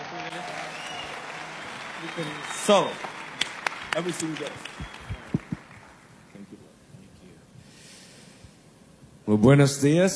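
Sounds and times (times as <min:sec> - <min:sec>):
audience applause: 0:00.0 - 0:06.4
speech: 0:02.0 - 0:03.2, 0:03.9 - 0:05.0, 0:09.3 - 0:10.1.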